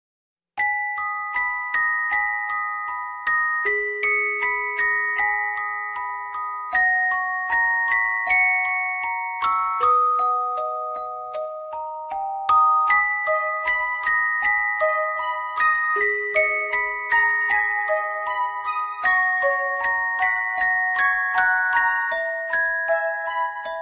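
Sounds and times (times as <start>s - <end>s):
sad love ringtone music: 0.6s - 23.8s.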